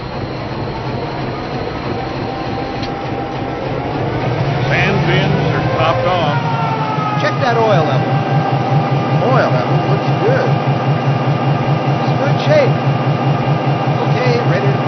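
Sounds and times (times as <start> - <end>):
GP-9 locomotive: 0.0 - 14.8.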